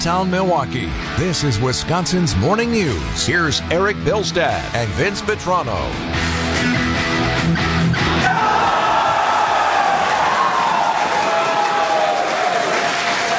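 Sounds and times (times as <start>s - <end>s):
speech: 0.0s - 7.0s
crowd cheering in celebration: 8.1s - 13.3s.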